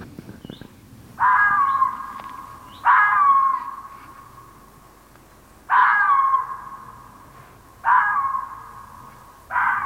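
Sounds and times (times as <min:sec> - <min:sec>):
female red fox barking: 0:01.2 - 0:03.9, 0:05.7 - 0:06.8, 0:07.8 - 0:08.9, 0:09.5 - 0:09.8.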